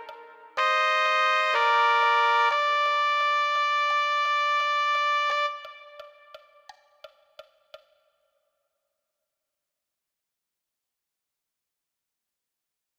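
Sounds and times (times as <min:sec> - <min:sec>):
trumpet: 0:00.0 - 0:06.5.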